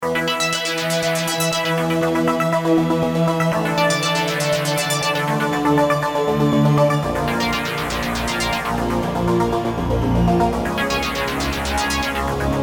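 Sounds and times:
dry mono keyboard: 0.0s - 2.7s, 3.4s - 12.5s.

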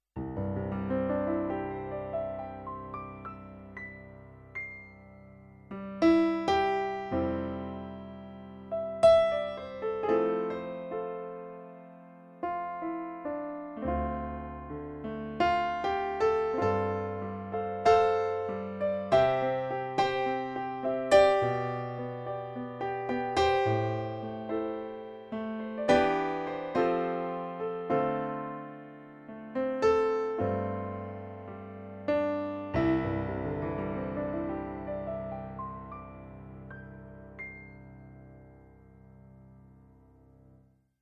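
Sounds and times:
piano: 0.0s - 41.0s.

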